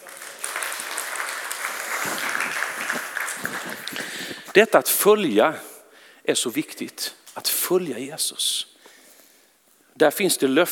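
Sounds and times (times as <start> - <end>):
audience applauding: 0.0 - 4.5
speech: 4.5 - 5.7, 6.3 - 8.7, 10.0 - 10.7.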